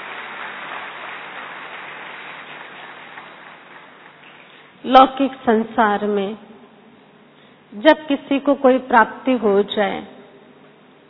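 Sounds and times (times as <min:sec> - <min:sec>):
applause welcoming a guest speaker: 0:00.0 - 0:04.8
speech: 0:04.8 - 0:06.5, 0:07.8 - 0:10.1.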